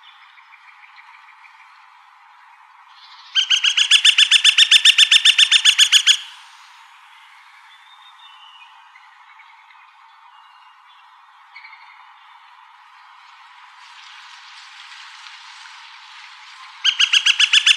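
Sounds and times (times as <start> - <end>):
Gilded Flicker woodpecker ringing call: 3.4 - 6.4, 16.8 - 17.7.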